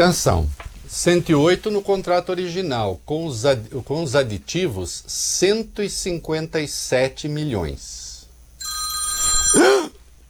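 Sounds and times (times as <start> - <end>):
speech: 0.0 - 8.0
phone ringing from an accidental call: 8.6 - 9.8.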